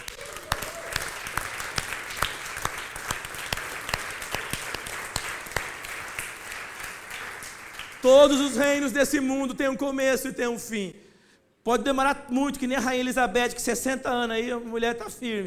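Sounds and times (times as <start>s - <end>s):
audience applause: 0.0s - 8.4s
speech: 8.0s - 11.0s, 11.6s - 15.4s.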